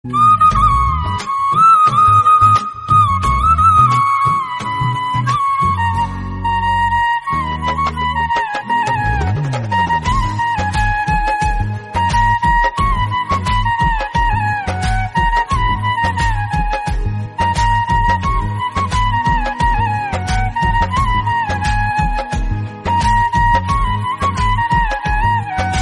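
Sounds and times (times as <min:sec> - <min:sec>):
flute instrumental: 0:00.0 - 0:25.7.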